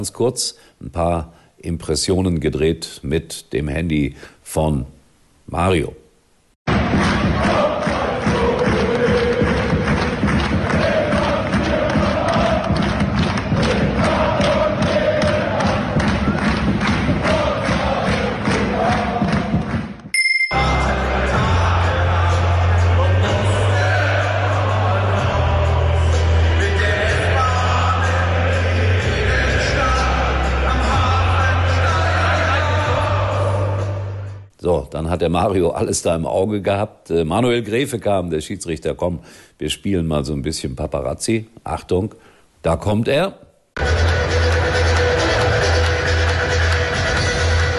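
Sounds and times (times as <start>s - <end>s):
speech: 0.0s - 6.0s, 35.2s - 44.0s
football stadium crowd atmosphere: 6.7s - 34.3s, 43.8s - 47.7s.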